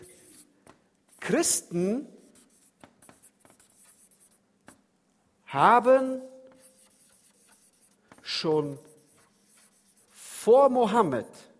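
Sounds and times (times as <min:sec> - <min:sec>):
black pen writing on paper: 0:00.0 - 0:00.5, 0:01.1 - 0:04.4, 0:06.4 - 0:10.5
speech: 0:01.3 - 0:02.2, 0:05.5 - 0:06.3, 0:08.4 - 0:08.9, 0:10.4 - 0:11.5.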